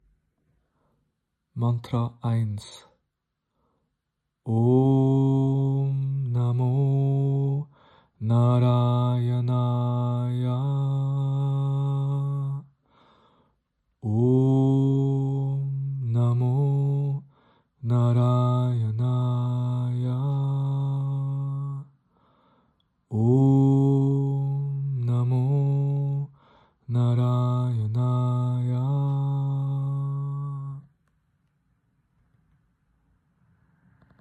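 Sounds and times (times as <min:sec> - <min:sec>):
mantra chanting: 0:01.6 - 0:03.0, 0:04.5 - 0:12.8, 0:14.0 - 0:22.0, 0:23.1 - 0:30.9.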